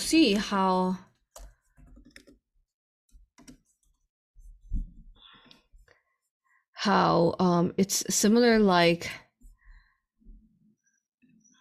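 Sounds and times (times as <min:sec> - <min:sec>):
speech: 0:00.1 - 0:01.1, 0:06.8 - 0:09.2
typing on a computer keyboard: 0:01.3 - 0:02.4, 0:03.4 - 0:03.7.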